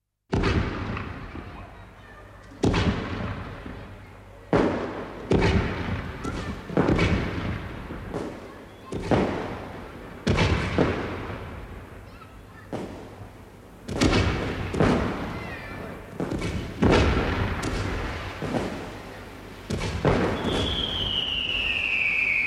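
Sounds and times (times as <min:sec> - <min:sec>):
fireworks: 0:00.3 - 0:22.4.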